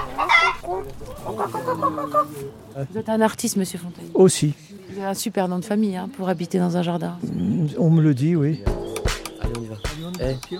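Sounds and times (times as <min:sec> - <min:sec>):
chickens clucking in a garden: 0:00.0 - 0:02.8, 0:08.6 - 0:10.5
speech: 0:00.7 - 0:10.5.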